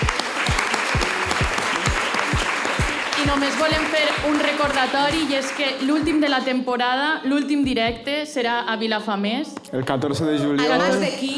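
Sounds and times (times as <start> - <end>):
audience applause: 0.0 - 6.1
speech: 3.3 - 11.3.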